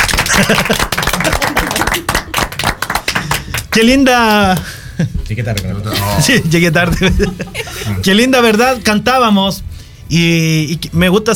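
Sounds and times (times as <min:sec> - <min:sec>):
audience clapping in praise: 0:00.0 - 0:04.8
laughter: 0:00.2 - 0:02.4, 0:04.8 - 0:08.8
speech: 0:00.4 - 0:01.4, 0:03.7 - 0:11.3.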